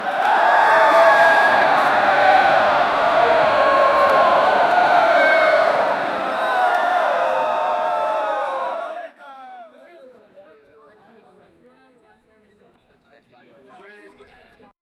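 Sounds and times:
crowd of spectators cheering: 0.0s - 9.1s.

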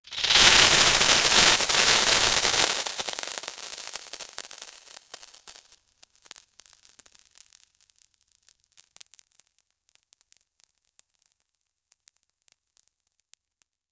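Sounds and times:
confetti burst: 0.1s - 5.5s.

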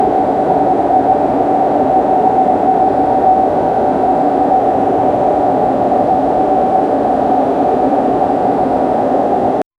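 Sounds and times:
ambience recorded while on transit: 0.0s - 9.6s.

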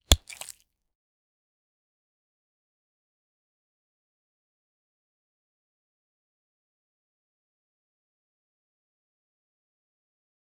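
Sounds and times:
fruit foley sounds: 0.0s - 0.6s.

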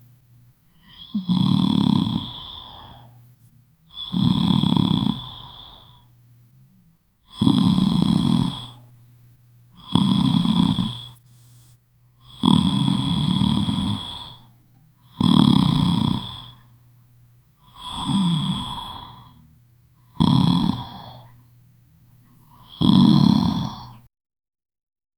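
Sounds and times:
girl snoring loudly: 0.7s - 3.3s, 3.9s - 6.2s, 7.2s - 9.1s, 9.7s - 16.8s, 17.5s - 21.5s, 22.3s - 24.1s.

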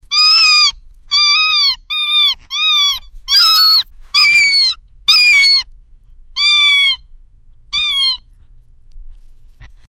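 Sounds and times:
baby parrot: 0.0s - 5.7s, 6.3s - 7.1s, 7.7s - 8.3s.

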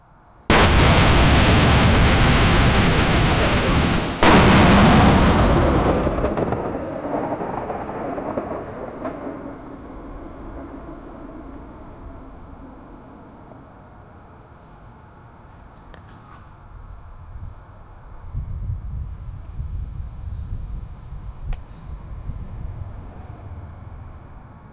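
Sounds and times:
AK-47 fire into the sky: 0.5s - 9.6s.

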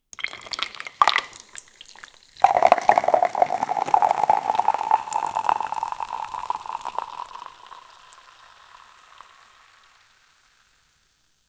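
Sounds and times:
soda pouring from a can: 0.1s - 10.4s.

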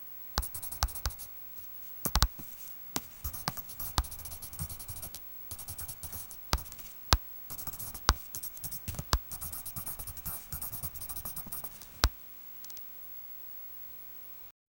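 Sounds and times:
person playing on an iPad: 0.4s - 1.3s, 2.1s - 12.1s
writing: 0.4s - 12.1s.

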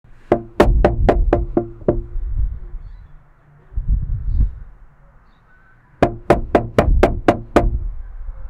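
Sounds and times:
knocking on a gate: 0.3s - 2.2s, 6.0s - 7.8s.

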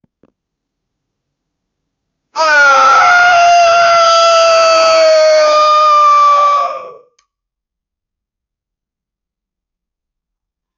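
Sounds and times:
human scream of pain: 2.4s - 7.1s.

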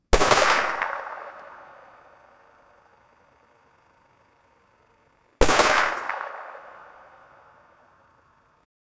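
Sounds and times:
shotgun shots: 0.1s - 2.5s, 5.4s - 7.6s.

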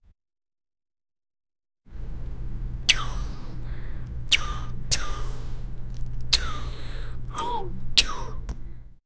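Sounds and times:
two people kissing: 2.0s - 8.9s.

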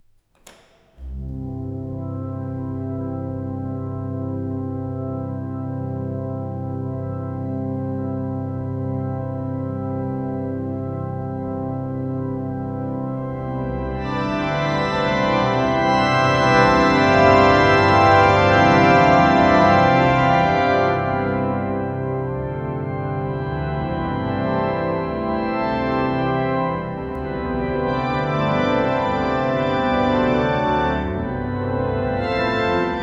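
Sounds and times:
person playing a classical toccata: 0.0s - 33.0s.

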